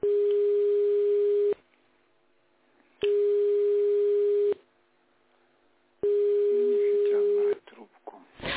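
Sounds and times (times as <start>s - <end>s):
telephone ringback tone while a call connects: 0.0s - 1.6s, 3.1s - 4.6s, 6.0s - 7.4s.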